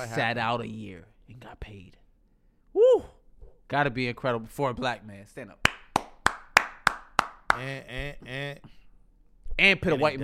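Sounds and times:
speech: 0.0s - 2.0s, 3.7s - 5.7s, 7.6s - 8.8s, 9.6s - 10.2s
hand claps: 5.6s - 7.8s.

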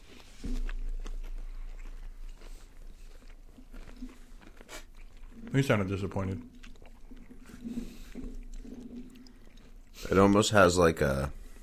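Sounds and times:
low rumble: 0.0s - 4.4s
chewing crunchy chips: 0.0s - 10.7s
speech: 5.5s - 6.6s, 10.1s - 11.4s.

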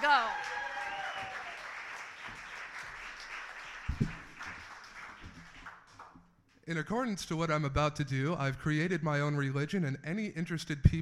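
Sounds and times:
audience clapping: 0.0s - 6.2s
speech: 6.7s - 10.9s.

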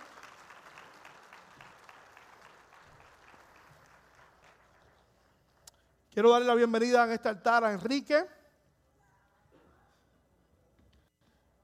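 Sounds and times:
audience applauding: 0.0s - 5.6s
speech: 6.2s - 8.4s.

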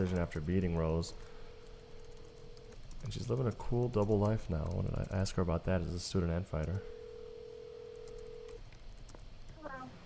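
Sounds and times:
speech: 0.0s - 1.4s, 3.0s - 7.0s
phone dial tone: 6.9s - 8.6s.

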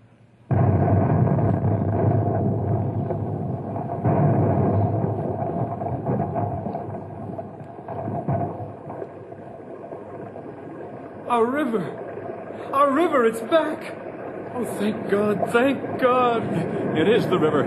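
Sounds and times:
Compound C explosive charge detonating: 0.5s - 9.1s
speech: 11.4s - 12.0s, 12.7s - 14.0s, 14.6s - 17.6s.

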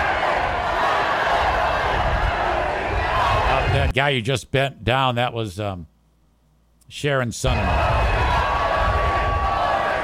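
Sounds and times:
large crowd shouting and chanting a name: 0.0s - 3.9s, 7.5s - 10.0s
speech: 3.8s - 5.9s, 6.9s - 7.8s.

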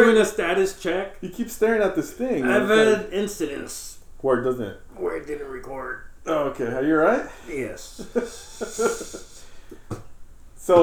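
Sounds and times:
speech: 0.1s - 9.3s, 10.6s - 10.8s
laughter: 2.4s - 3.0s, 7.9s - 9.4s
man coughing: 2.4s - 3.0s.

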